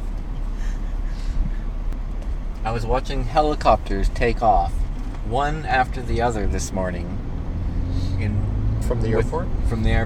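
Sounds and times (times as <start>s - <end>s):
air conditioner running: 0.0s - 7.8s
speech: 2.6s - 7.2s, 8.2s - 10.0s.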